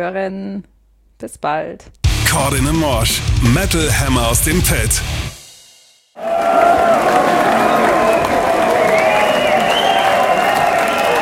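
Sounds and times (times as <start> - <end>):
speech: 0.0 - 5.3
large concert crowd clapping at a sold-out metal concert: 6.2 - 11.2
whistles: 8.1 - 11.2.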